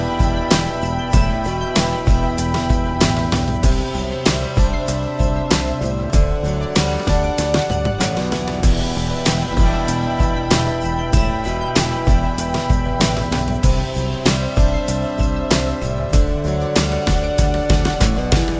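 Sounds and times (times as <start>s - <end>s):
jam guitar: 0.0s - 18.5s.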